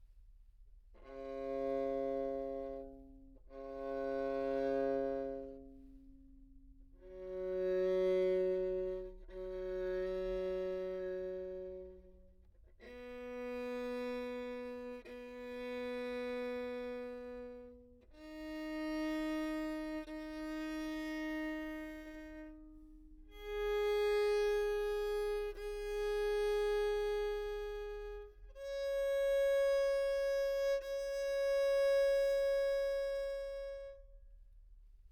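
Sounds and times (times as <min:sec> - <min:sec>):
treble viol open string: 0:00.9 - 0:35.0.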